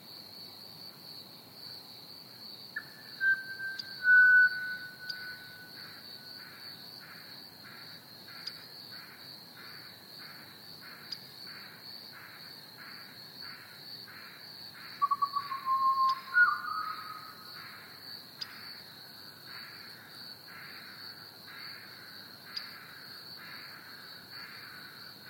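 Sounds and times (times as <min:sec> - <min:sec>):
Pied Butcherbird song: 0:02.8 - 0:06.5, 0:14.9 - 0:17.8.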